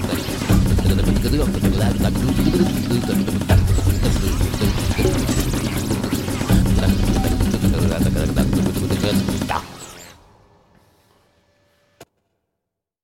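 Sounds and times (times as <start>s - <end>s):
ethnic scat singing: 0.0s - 10.0s.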